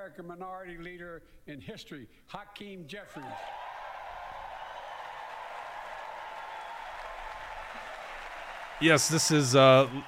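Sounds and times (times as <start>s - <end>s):
speech: 0.1s - 3.6s, 8.8s - 10.0s
audience applause in legislative chamber: 3.2s - 10.0s.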